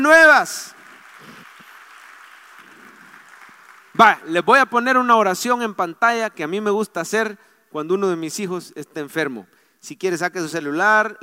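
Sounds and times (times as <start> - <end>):
speech: 0.0 - 1.3, 4.0 - 11.2
audience applauding: 0.0 - 4.4.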